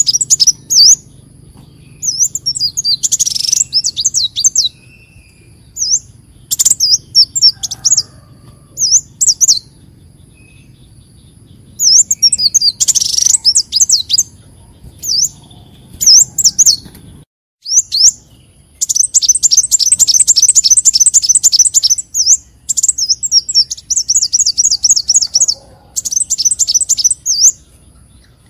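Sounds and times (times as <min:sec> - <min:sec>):
leafbird whistling: 0:00.0 - 0:16.9, 0:17.6 - 0:28.4.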